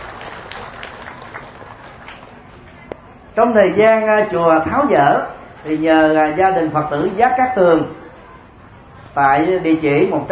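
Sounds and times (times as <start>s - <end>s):
applause at a Buddhist temple in honor of donors: 0.0s - 2.8s
speech: 3.4s - 8.0s, 9.2s - 10.3s.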